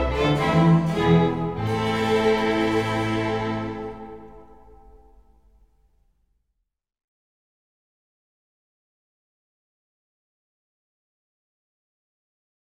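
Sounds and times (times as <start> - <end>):
concerto for violin strings and continuo in A minor: 0.0 - 5.2.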